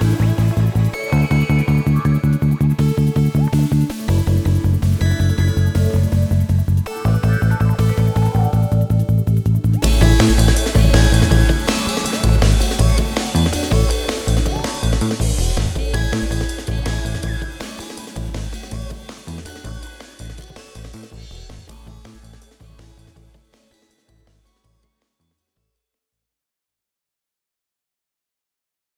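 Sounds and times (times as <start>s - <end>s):
drum: 0.0s - 8.4s, 9.3s - 23.2s.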